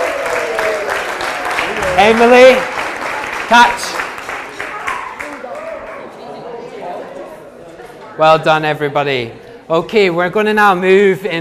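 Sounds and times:
audience applause: 0.0 - 6.1
speech: 2.0 - 2.8, 3.5 - 4.0, 8.2 - 11.3.

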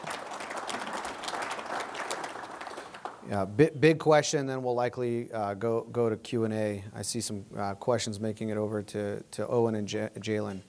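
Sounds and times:
audience applause: 0.0 - 3.2
speech: 3.3 - 10.6.

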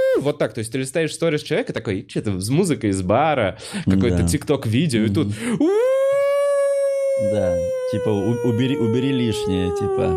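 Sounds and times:
speech: 0.2 - 6.0, 7.2 - 10.1
voice imitating a wailing siren: 5.6 - 10.1.

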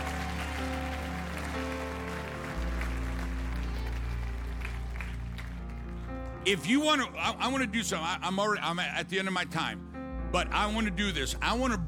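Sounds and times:
audience clapping: 0.0 - 6.7
speech: 6.5 - 11.8.

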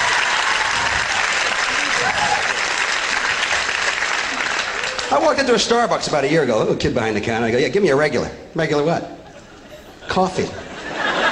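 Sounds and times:
audience applause: 0.0 - 5.6
speech: 5.2 - 9.2, 10.1 - 10.6
laughter: 9.2 - 11.3.

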